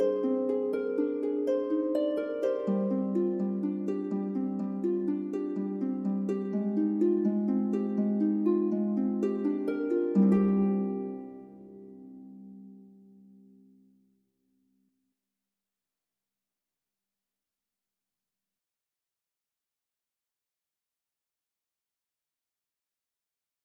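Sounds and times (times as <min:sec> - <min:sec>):
harp: 0:00.0 - 0:13.8.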